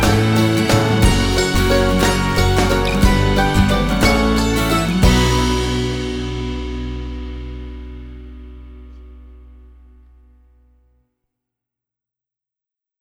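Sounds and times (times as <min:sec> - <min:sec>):
mandolinette: 0:00.0 - 0:10.2.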